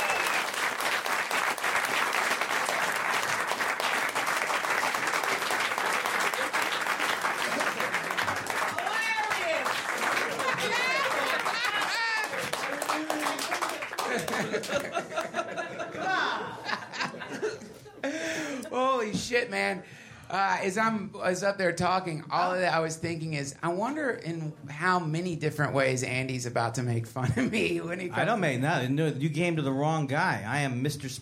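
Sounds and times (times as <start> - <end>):
audience applause: 0.0 - 15.7
laughter: 10.0 - 18.6
speech: 19.4 - 31.2.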